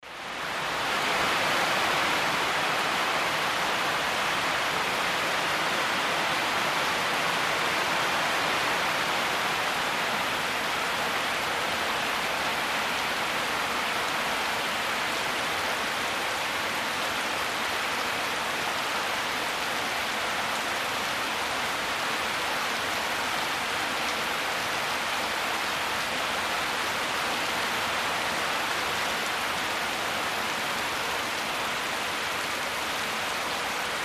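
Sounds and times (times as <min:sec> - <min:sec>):
tropical deluge outdoors: 0:00.0 - 0:34.0.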